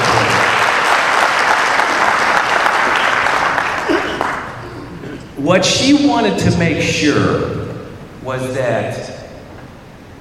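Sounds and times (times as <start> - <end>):
audience applause: 0.0 - 5.1
speech: 5.4 - 7.6, 8.3 - 9.1.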